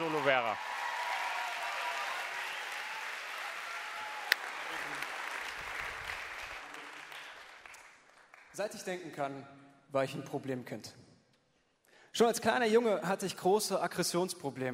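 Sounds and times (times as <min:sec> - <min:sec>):
audience applause: 0:00.0 - 0:08.6
speech: 0:00.2 - 0:00.8, 0:08.6 - 0:11.0, 0:12.2 - 0:14.7.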